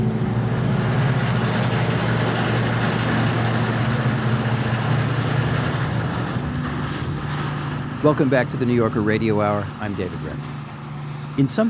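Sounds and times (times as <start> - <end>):
hydraulic drills and compressors at a fracking site: 0.2 - 8.3
speech: 8.1 - 10.7, 11.3 - 11.6.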